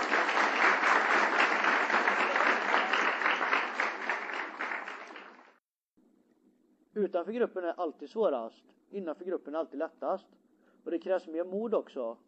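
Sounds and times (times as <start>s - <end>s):
crowd applause: 0.0s - 5.6s
speech: 7.0s - 12.2s.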